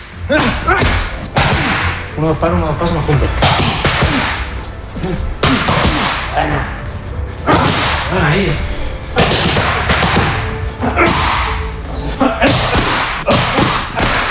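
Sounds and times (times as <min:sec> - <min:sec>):
punches hitting training pads: 0:00.3 - 0:02.0, 0:03.3 - 0:04.5, 0:05.4 - 0:06.5, 0:07.5 - 0:08.2, 0:09.2 - 0:11.6, 0:12.4 - 0:14.2
speech: 0:02.2 - 0:03.8, 0:05.0 - 0:05.3, 0:06.4 - 0:06.8, 0:08.1 - 0:08.7.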